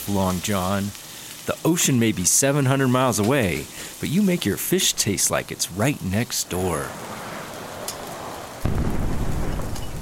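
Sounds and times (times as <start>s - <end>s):
speech: 0.1s - 7.3s
explosion: 8.6s - 10.0s.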